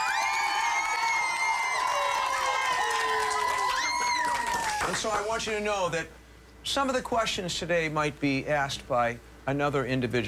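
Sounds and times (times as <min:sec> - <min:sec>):
high-pitched whoops and shouts: 0:00.0 - 0:05.0
studio audience of young choristers cheering: 0:00.0 - 0:05.6
speech: 0:04.9 - 0:10.2.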